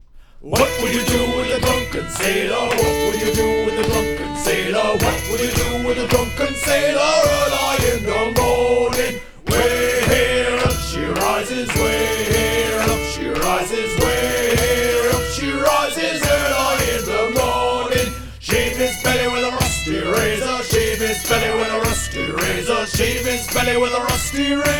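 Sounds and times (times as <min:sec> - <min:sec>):
sea shanty singing: 0:00.4 - 0:24.7.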